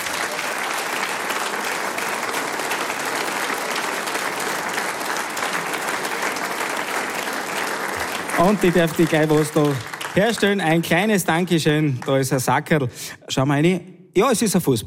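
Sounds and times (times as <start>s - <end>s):
audience applause: 0.0s - 12.6s
speech: 8.4s - 14.8s.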